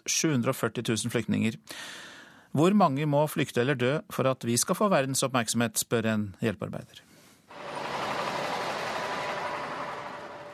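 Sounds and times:
speech: 0.1 - 7.1
truck engine arriving: 7.5 - 10.5.

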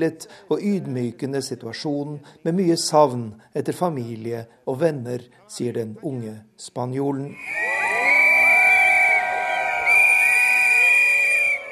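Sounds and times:
speech: 0.0 - 7.6
crowd of demonstrators shouting and cheering: 7.4 - 11.7.

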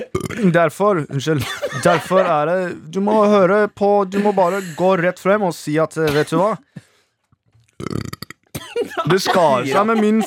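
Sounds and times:
burp: 0.0 - 0.6, 7.8 - 8.6
speech: 0.0 - 6.9, 7.8 - 8.1, 9.0 - 10.2
laughter: 1.4 - 3.5, 4.1 - 4.9, 8.8 - 10.2.

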